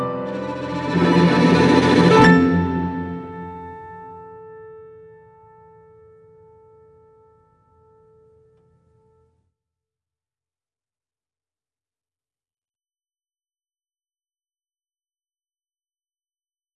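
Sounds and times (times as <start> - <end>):
music level stinger: 0.1 - 4.7.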